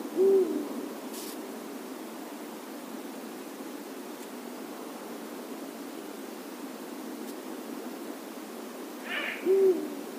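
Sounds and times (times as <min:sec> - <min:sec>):
Eurasian eagle-owl Bubo bubo deep hoot: 0:00.1 - 0:00.7, 0:09.0 - 0:10.0.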